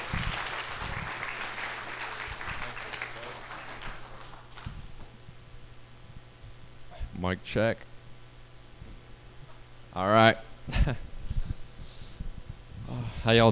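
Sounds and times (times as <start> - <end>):
audience round of applause: 0.0 - 4.7
speech: 7.2 - 7.9, 10.0 - 11.0, 13.3 - 13.5.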